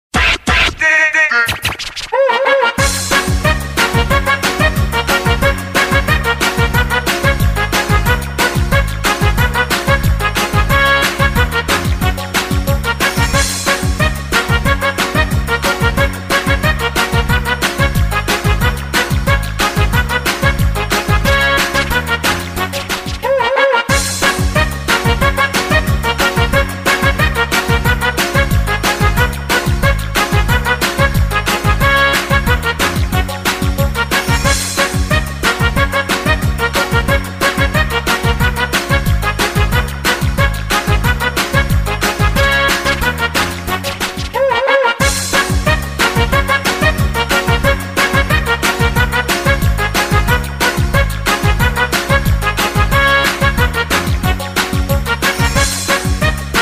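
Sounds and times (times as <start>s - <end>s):
children's party music for games and relay races: 0.0s - 56.6s.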